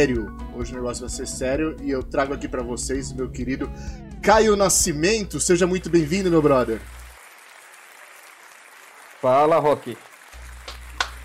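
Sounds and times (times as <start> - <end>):
speech: 0.0 - 7.0, 9.2 - 10.1
applause: 5.6 - 11.2.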